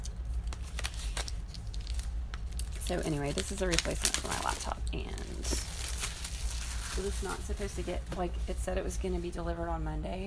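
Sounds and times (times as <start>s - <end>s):
packaging tear tab being ripped open: 0.0s - 7.0s
speech: 2.9s - 5.7s, 7.0s - 10.2s.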